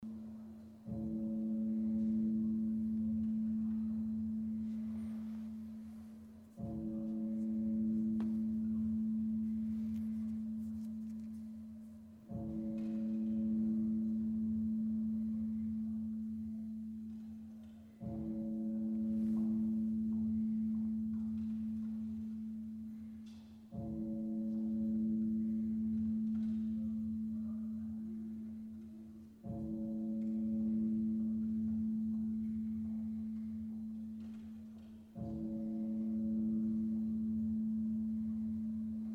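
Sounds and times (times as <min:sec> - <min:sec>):
gong: 0:00.0 - 0:39.1.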